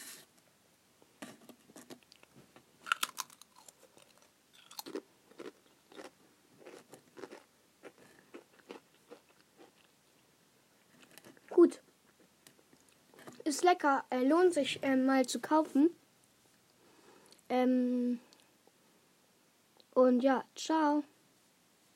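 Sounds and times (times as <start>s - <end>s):
crunchy chewing while tasting food: 1.2s - 10.0s, 10.8s - 13.4s
speech: 13.5s - 16.0s, 17.6s - 18.3s, 20.1s - 21.1s.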